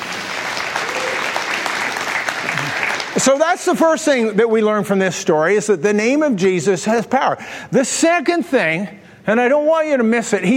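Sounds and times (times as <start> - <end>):
audience applauding: 0.0 - 3.6
speech: 3.2 - 10.5.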